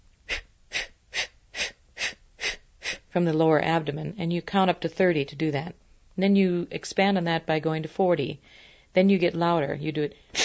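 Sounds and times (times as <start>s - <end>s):
breath puffs during a deep breathing exercise: 0.2s - 3.1s, 10.2s - 10.4s
speech: 3.1s - 10.3s.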